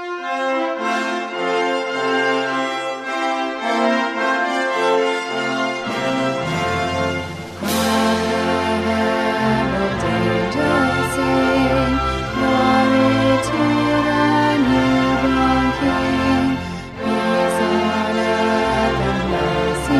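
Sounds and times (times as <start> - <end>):
choir singing a Christmas carol: 0.2 - 19.9
tenor singing a Christmas carol: 7.6 - 19.9.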